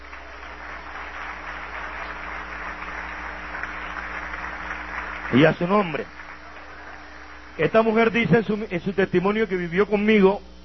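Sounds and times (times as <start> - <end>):
audience applause: 0.0 - 8.1
speech: 5.3 - 6.2, 7.6 - 10.5.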